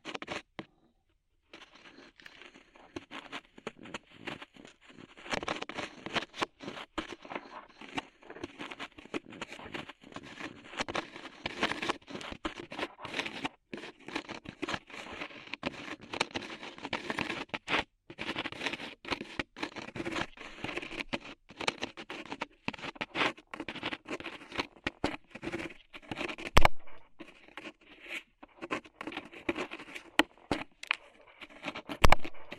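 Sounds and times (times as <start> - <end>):
crackling and sticky tapping of clay and rhinestones being removed: 1.5 - 32.5.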